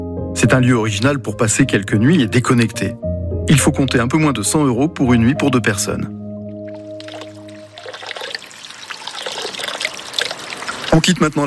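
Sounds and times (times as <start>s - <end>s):
speech: 0.4s - 6.2s, 11.0s - 11.4s
water trickling and splashing from a village fountain: 6.5s - 11.4s.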